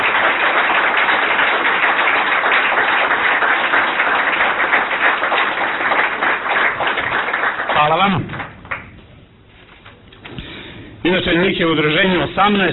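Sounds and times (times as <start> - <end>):
audience applause for a team from an association: 0.0 - 8.9
speech: 7.9 - 8.3, 11.1 - 12.7.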